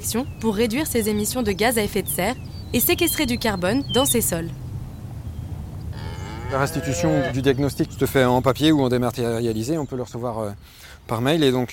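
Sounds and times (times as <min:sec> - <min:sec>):
speech: 0:00.0 - 0:04.6, 0:06.5 - 0:11.7
cattle mooing: 0:05.9 - 0:07.6.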